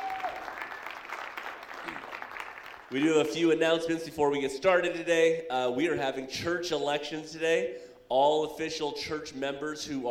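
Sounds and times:
audience applause: 0.0s - 2.9s
speech: 2.9s - 10.0s.

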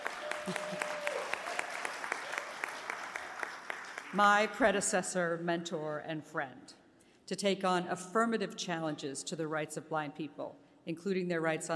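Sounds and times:
audience applause: 0.0s - 4.2s
speech: 0.5s - 0.9s, 4.1s - 11.7s.

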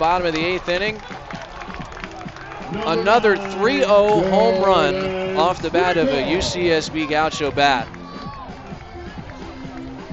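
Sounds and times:
speech: 0.0s - 1.1s, 2.7s - 8.0s
baseball stadium crowd cheering: 0.0s - 10.1s
crowd whistles: 2.4s - 6.8s.

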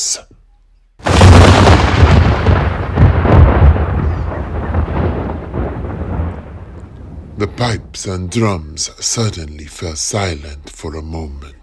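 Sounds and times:
speech: 0.1s - 0.4s, 7.4s - 11.6s
explosion of magical fire sound effect: 1.0s - 8.5s.

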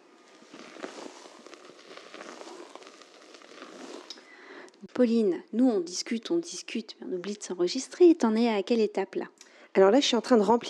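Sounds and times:
melted chocolate crackling into whipped egg whites: 0.0s - 5.0s
speech: 4.9s - 10.6s.

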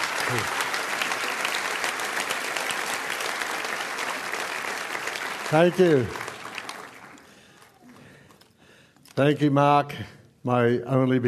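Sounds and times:
audience applause: 0.0s - 8.2s
speech: 0.3s - 0.6s, 5.5s - 6.2s, 9.2s - 11.2s.

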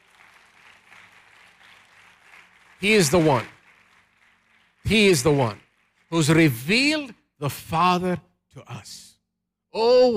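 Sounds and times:
audience clapping: 0.0s - 7.6s
speech: 2.8s - 3.6s, 4.9s - 9.1s, 9.7s - 10.1s.

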